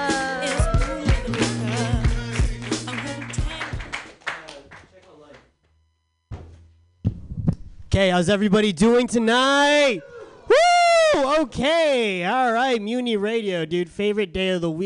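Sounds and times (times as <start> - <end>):
audience clapping and cheering for a comedian: 0.0 - 5.5
speech: 8.0 - 10.1, 11.1 - 14.8.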